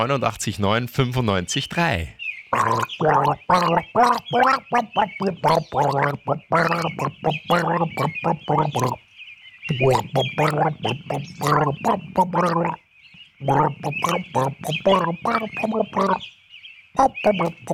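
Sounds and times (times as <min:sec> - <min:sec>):
speech: 0:00.0 - 0:09.0, 0:09.7 - 0:12.8, 0:13.4 - 0:16.4, 0:17.0 - 0:17.7
person gargling a song: 0:02.5 - 0:09.0, 0:09.7 - 0:12.8, 0:13.4 - 0:16.2, 0:17.0 - 0:17.7.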